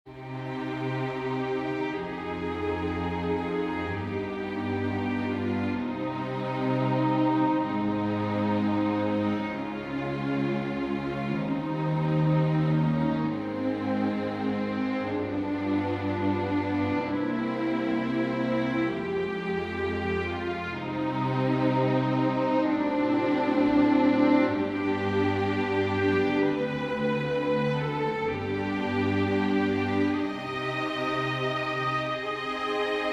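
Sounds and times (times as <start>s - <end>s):
string quartet playing a prelude: 0.1s - 33.1s.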